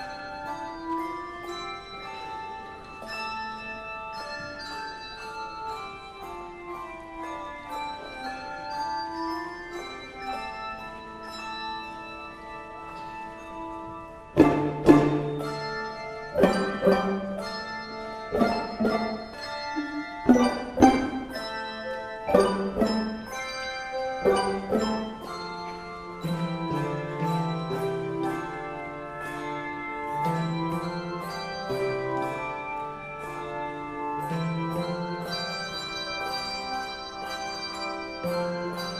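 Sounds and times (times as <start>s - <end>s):
handbells ringing: 0.0s - 38.9s.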